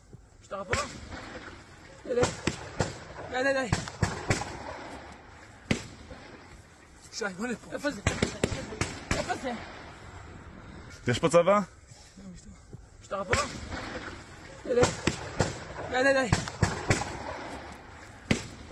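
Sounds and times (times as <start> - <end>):
speech: 0.5 - 4.0, 7.2 - 9.8, 11.1 - 11.8, 13.1 - 15.2, 15.9 - 16.5
gunfire: 0.7 - 6.6, 7.7 - 10.0, 13.2 - 18.7.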